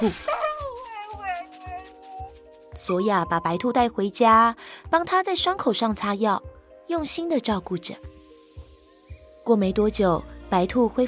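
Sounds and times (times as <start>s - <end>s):
speech: 0.0s - 0.4s, 2.8s - 8.2s, 9.5s - 11.0s
wild dog howling: 0.3s - 2.4s.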